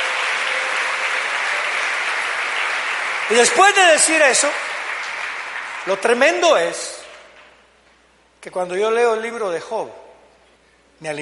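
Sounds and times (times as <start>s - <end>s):
audience applauding loudly: 0.0s - 7.6s
speech: 3.3s - 4.7s, 5.8s - 6.8s, 8.4s - 10.0s, 11.0s - 11.2s.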